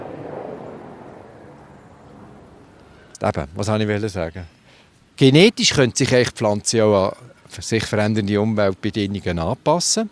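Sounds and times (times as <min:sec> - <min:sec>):
helicopter flying overhead: 0:00.0 - 0:03.2
speech: 0:03.2 - 0:04.6, 0:05.2 - 0:10.0.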